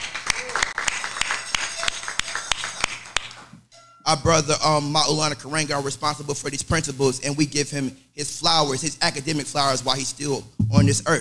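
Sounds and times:
audience hand clapping: 0.0 - 3.5
speech: 4.1 - 11.1.

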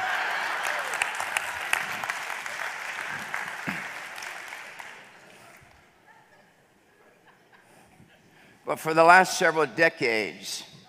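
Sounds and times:
audience applause: 0.0 - 5.6
speech: 8.7 - 10.7.

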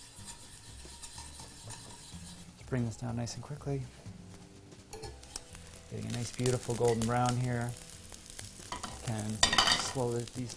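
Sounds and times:
spoon stirring cream reducing in a pan: 0.0 - 2.5
faint low sizzle: 0.0 - 10.5
speech: 2.7 - 4.1, 5.9 - 7.8, 9.1 - 10.5.

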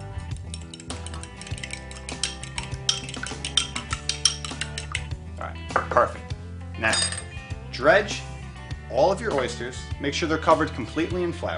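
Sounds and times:
soft music: 0.0 - 11.5
whisk mixing light cream in a bowl: 0.3 - 5.1
speech: 5.5 - 6.2, 6.8 - 7.2, 7.8 - 8.3, 8.9 - 11.5.

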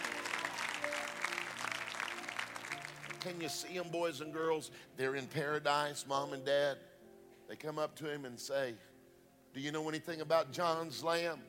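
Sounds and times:
church congregation applauding: 0.0 - 3.9
speech: 3.2 - 6.9, 7.5 - 8.9, 9.5 - 11.4.

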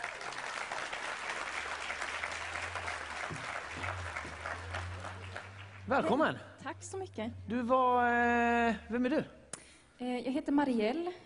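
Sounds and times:
warm audience applause: 0.0 - 6.4
speech: 5.9 - 9.4, 10.0 - 11.2.

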